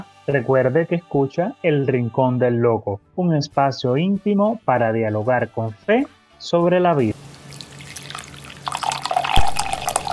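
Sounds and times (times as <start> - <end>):
speech: 0.3 - 7.2
coffee being poured into a cup: 7.3 - 10.1.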